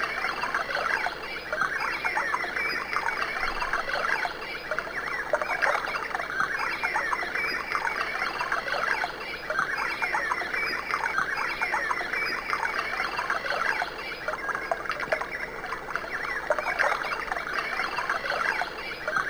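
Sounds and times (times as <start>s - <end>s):
birds as tinnitus masker: 0.0s - 19.2s.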